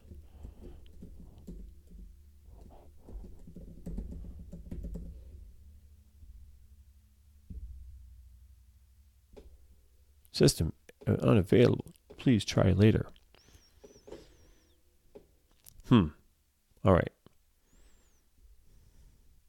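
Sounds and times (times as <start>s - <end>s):
typing an email address on a computer keyboard: 0.0s - 2.1s, 3.2s - 5.2s
low steady hum: 5.3s - 10.2s
speech: 10.4s - 13.2s, 15.9s - 16.2s, 16.8s - 17.2s.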